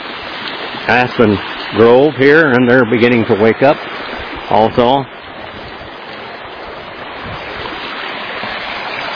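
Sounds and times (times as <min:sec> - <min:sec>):
flowing creek water: 0:00.0 - 0:09.1
speech: 0:00.9 - 0:05.2.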